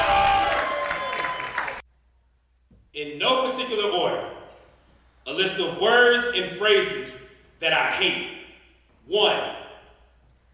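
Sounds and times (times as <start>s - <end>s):
audience clapping at the Jambalaya Soul Slam poetry slam in Durham, North Carolina: 0.0s - 1.8s
speech: 3.0s - 4.4s, 5.2s - 8.4s, 9.1s - 9.6s.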